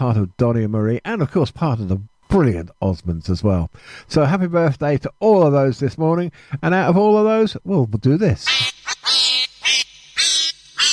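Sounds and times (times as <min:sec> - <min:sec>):
speech: 0:00.0 - 0:09.2
bright nasal duck quacking: 0:08.4 - 0:10.9.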